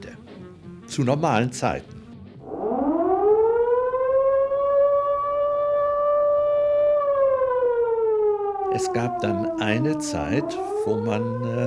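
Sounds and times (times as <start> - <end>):
speech: 1.0 - 2.0, 8.7 - 11.6
air raid siren: 2.4 - 11.6.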